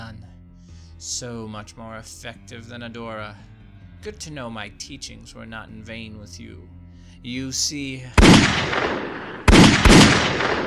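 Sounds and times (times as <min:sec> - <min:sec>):
steady low rumble: 0:00.0 - 0:10.6
speech: 0:01.0 - 0:09.2
gunshots: 0:08.2 - 0:10.6.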